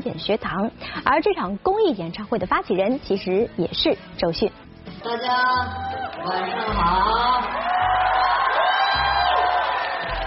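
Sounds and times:
speech: 0.0 - 7.9
audience applause and cheering: 5.6 - 10.2.

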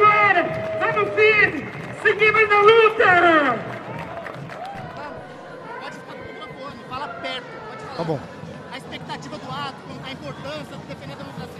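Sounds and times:
crowd clapping and cheering: 0.0 - 6.0
speech: 8.0 - 8.3, 10.1 - 11.5.

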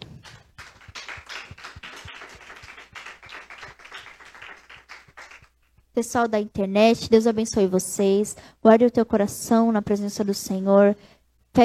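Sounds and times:
audience clapping: 0.0 - 5.6
speech: 6.0 - 11.6.

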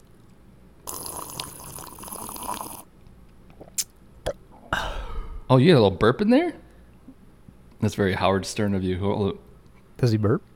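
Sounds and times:
person drinking out of a water bottle: 0.9 - 2.9
speech: 5.5 - 6.6, 7.8 - 10.5.

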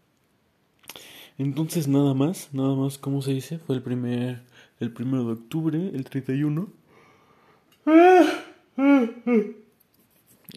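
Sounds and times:
speech: 1.4 - 6.8, 7.9 - 9.6
yawning: 7.8 - 9.6.

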